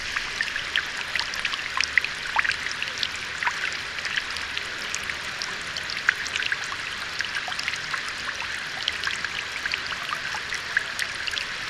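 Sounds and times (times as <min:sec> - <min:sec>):
water splashing: 0:00.0 - 0:11.6.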